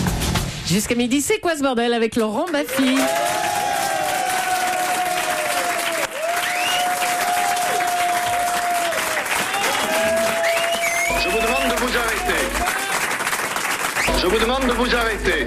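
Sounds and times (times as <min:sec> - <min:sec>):
speech: 0:00.7 - 0:03.5, 0:14.2 - 0:15.4
studio audience applause: 0:02.5 - 0:15.4.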